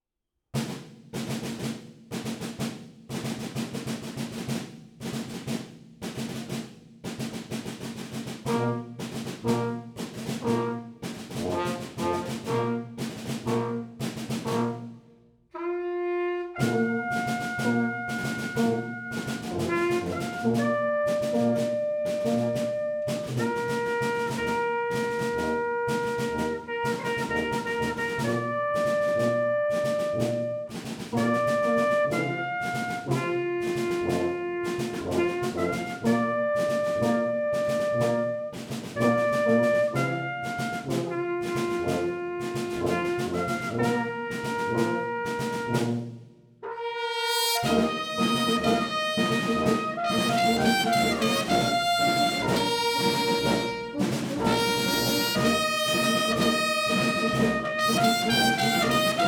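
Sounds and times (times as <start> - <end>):
military bolero music: 0.6 - 59.2.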